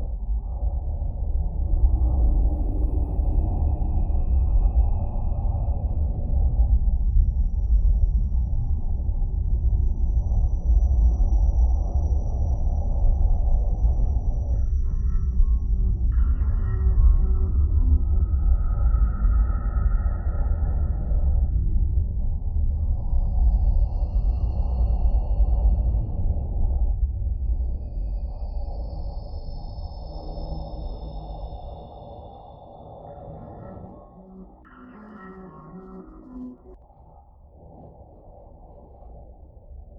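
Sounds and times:
AM on FM sine wave: 0.0 - 39.9.

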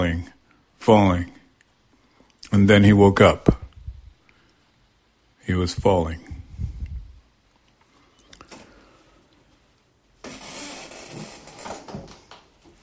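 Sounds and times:
speech: 0.0 - 1.4, 2.5 - 3.6, 5.5 - 6.3
chair creaking: 10.2 - 12.8.

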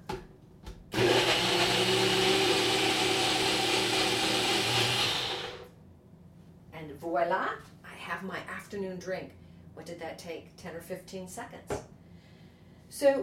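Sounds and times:
NutriBullet blender blending a vegetable drink: 0.9 - 5.7
speech: 7.2 - 11.8, 12.9 - 13.2.

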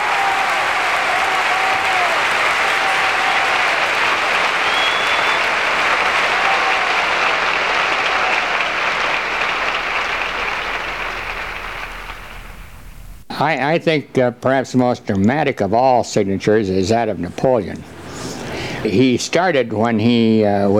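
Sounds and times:
faint whistles and cheers: 0.0 - 11.4
large audience applause: 0.0 - 12.7
speech: 13.4 - 17.9, 18.8 - 20.7.

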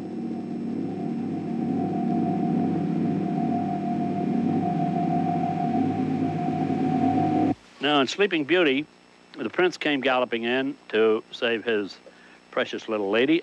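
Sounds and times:
low rumbling: 0.0 - 7.6
submarine sound effect droning metallic hum from cymbal: 0.0 - 7.6
speech: 7.8 - 13.4.

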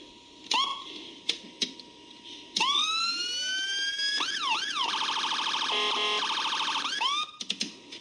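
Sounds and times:
loud electronic emergency vehicle siren: 2.6 - 7.4.

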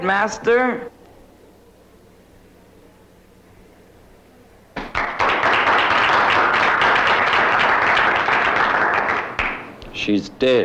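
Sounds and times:
speech: 0.0 - 0.9, 10.0 - 10.6
person applauding: 4.8 - 9.7.

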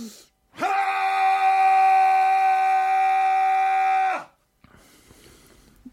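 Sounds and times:
man primal scream: 0.6 - 4.4.

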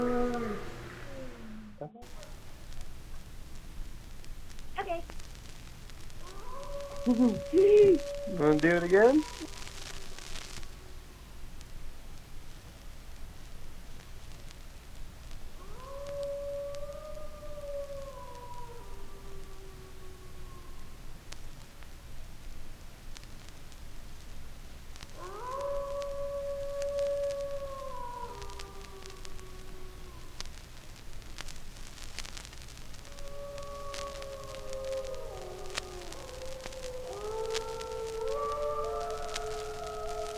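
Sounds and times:
wolves howling: 0.0 - 2.4, 6.2 - 11.4, 15.5 - 21.2, 25.1 - 30.6, 33.0 - 40.3
steady hiss: 0.0 - 40.3
speech: 7.1 - 9.6.

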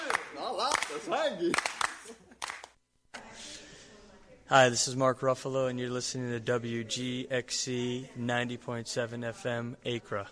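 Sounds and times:
hand claps: 0.0 - 2.8
speech: 0.6 - 1.8, 4.5 - 10.3.

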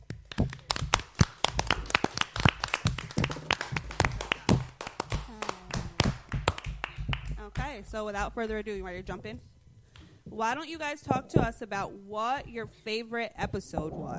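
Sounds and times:
applause, hands clapping: 0.0 - 8.0
speech: 7.8 - 9.5, 10.3 - 14.1.

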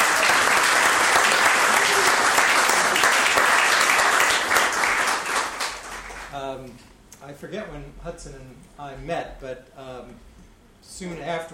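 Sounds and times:
crowd applause: 0.0 - 6.4
speech: 7.4 - 11.5.

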